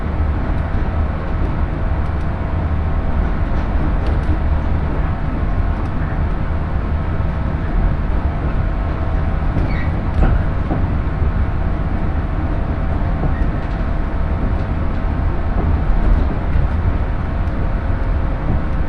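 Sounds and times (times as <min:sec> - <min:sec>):
Shinano Railway train wheels rumbling: 0:00.0 - 0:18.8
constant hum: 0:00.0 - 0:18.8
faint clicks and squeaks: 0:09.6 - 0:10.4.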